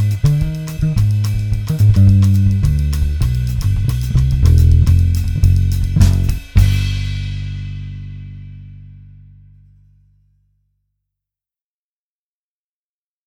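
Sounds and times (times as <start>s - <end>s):
minor blues music without guitar: 0.0s - 6.8s.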